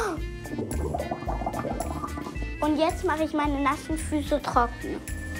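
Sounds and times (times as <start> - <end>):
blowing bubbles in bath water: 0.0 - 2.6
speech: 2.6 - 5.2.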